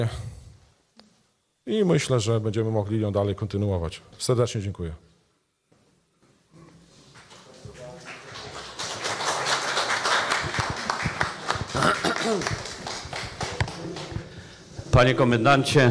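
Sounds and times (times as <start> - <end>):
speech: 0.0 - 0.3, 1.6 - 5.1, 15.0 - 15.8
audience applause: 7.2 - 14.6.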